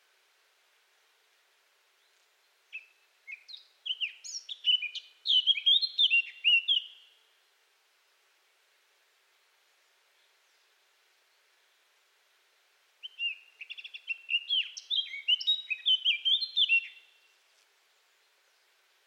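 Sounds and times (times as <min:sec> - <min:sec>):
blackcap Sylvia atricapilla singing: 0:02.0 - 0:07.2, 0:13.0 - 0:17.4.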